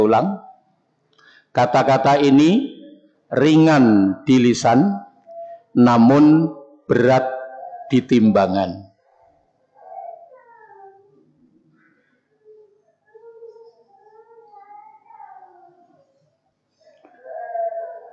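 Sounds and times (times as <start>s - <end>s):
speech: 0.0s - 0.5s, 1.6s - 2.7s, 3.3s - 5.0s, 5.8s - 8.9s
small child crying during a religious sermon: 9.7s - 11.3s, 12.4s - 16.2s, 17.0s - 18.1s.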